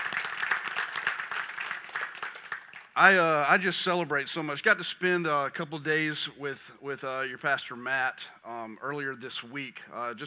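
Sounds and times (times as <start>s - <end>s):
audience applause: 0.0s - 3.0s
speech: 3.0s - 10.2s.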